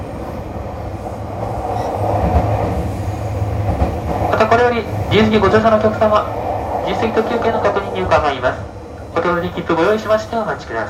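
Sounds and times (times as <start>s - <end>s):
limited express train running, heard from inside a carriage: 0.0s - 10.8s
speech: 4.7s - 10.8s.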